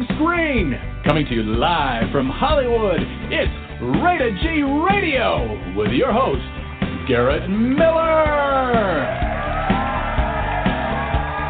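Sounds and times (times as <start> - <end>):
speech: 0.1 - 9.3
crowd cheering wildly with whoops shouts and yells, radio show sound effect: 8.4 - 11.4.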